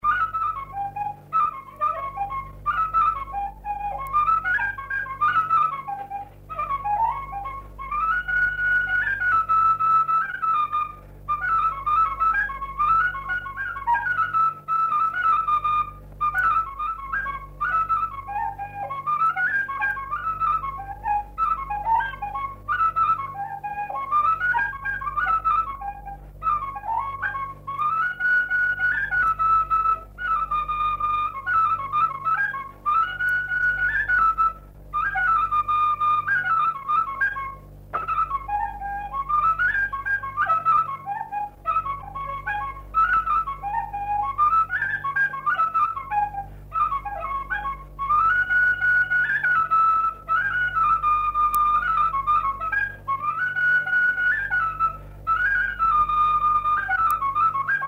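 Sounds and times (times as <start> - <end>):
galop played on a fluier flute: 0.0 - 57.8.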